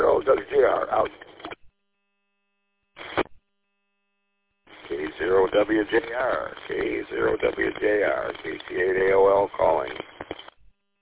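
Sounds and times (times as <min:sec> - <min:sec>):
garbled voice over radio: 0:00.0 - 0:01.3, 0:04.8 - 0:10.1
radio static on a narrowband two-way radio transmission: 0:00.0 - 0:01.6, 0:03.0 - 0:03.4, 0:04.7 - 0:10.6
speech: 0:00.3 - 0:01.4, 0:05.2 - 0:10.1.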